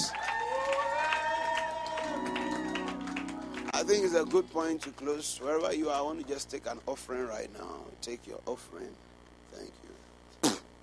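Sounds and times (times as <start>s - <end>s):
church congregation clapping: 0.0s - 6.6s
sustained tones: 2.0s - 6.6s
speech: 3.8s - 9.9s.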